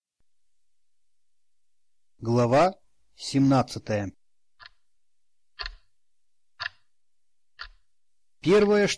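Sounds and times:
speech: 0:02.2 - 0:04.2, 0:08.4 - 0:08.9
clock ticking: 0:04.5 - 0:04.9, 0:05.5 - 0:08.9.

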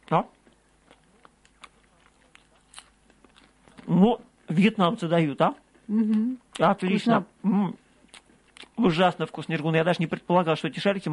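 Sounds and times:
biting and chewing Vietnamese sesame-coated bean balls: 0:00.0 - 0:04.4, 0:07.8 - 0:09.5
speech: 0:00.1 - 0:00.4, 0:03.9 - 0:07.8, 0:08.8 - 0:11.1.

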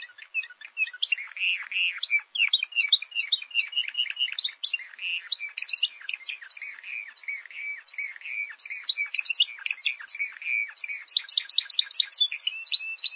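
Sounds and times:
bird song with sharp chirps, trills and twisting whistles: 0:00.0 - 0:13.1.

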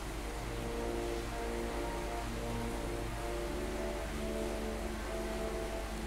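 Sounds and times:
heavy rain: 0:00.0 - 0:06.0.

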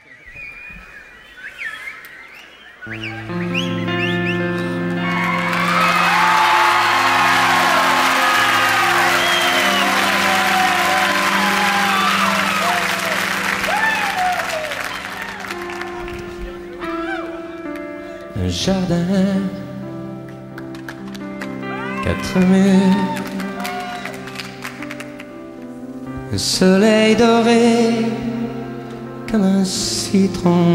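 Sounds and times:
live concert crowd cheering, whooping and whistling: 0:00.0 - 0:17.9, 0:21.2 - 0:25.3
speech: 0:02.8 - 0:03.9, 0:18.6 - 0:19.6, 0:22.1 - 0:23.4, 0:26.3 - 0:28.5, 0:29.3 - 0:30.7
sustained music: 0:02.9 - 0:30.7
clapping: 0:04.8 - 0:16.6, 0:20.6 - 0:21.6, 0:22.2 - 0:25.3.

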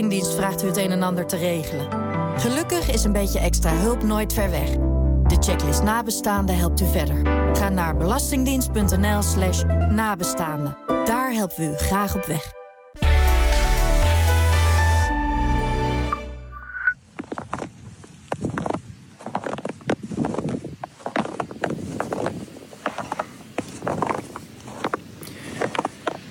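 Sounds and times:
speech: 0:00.0 - 0:12.6
music: 0:00.0 - 0:16.7
footsteps crunching through a thin layer of fresh snow: 0:17.0 - 0:26.2.

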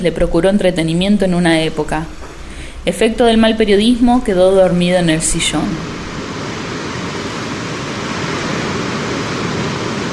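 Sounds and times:
speech: 0:00.0 - 0:02.2, 0:02.8 - 0:06.0
wind roaring: 0:02.4 - 0:10.1
sea waves crashing against a house and its garden: 0:04.7 - 0:10.1.

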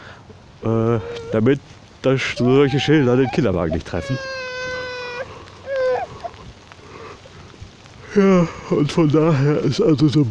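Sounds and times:
speech: 0:00.6 - 0:04.4, 0:08.2 - 0:10.3
small child whining: 0:00.9 - 0:01.4, 0:02.3 - 0:06.4.

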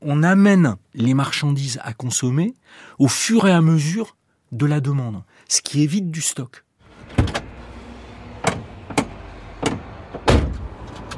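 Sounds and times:
speech: 0:00.1 - 0:07.3
clunks and thuds inside the cab of a Renault T truck: 0:08.4 - 0:11.1.

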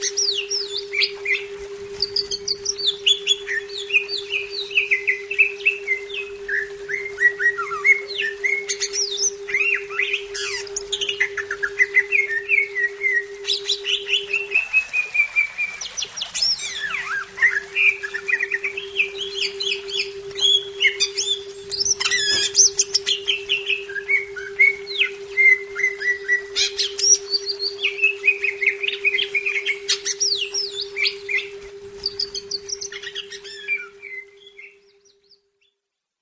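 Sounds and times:
leafbird singing whistled slurs and chattering bursts: 0:00.0 - 0:35.9.

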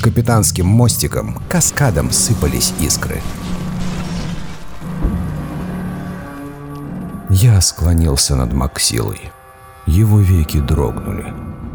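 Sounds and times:
rumbling explosions shaking a ship deck: 0:00.0 - 0:06.6
speech: 0:00.1 - 0:03.6, 0:07.4 - 0:11.5.

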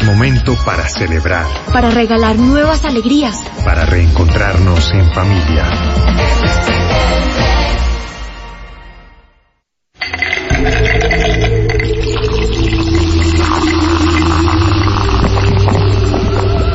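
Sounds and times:
speech: 0:00.2 - 0:07.4
cold Canada Dry ginger ale opened and poured, fizzing: 0:10.1 - 0:16.6.

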